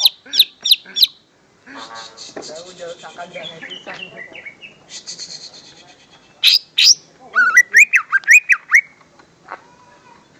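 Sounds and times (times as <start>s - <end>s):
greater green leafbird chipping: 0.0s - 1.3s, 2.0s - 9.0s.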